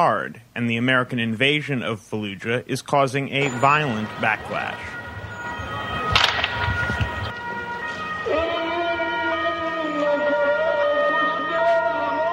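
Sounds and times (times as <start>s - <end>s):
speech: 0.0s - 5.0s
ambulance siren: 3.4s - 12.3s
gunfire: 6.0s - 7.3s.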